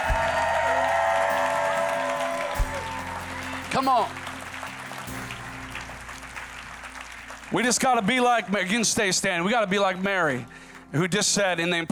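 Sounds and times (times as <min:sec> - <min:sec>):
audience clapping in praise: 0:00.0 - 0:09.6
speech: 0:03.7 - 0:04.2, 0:07.5 - 0:11.9.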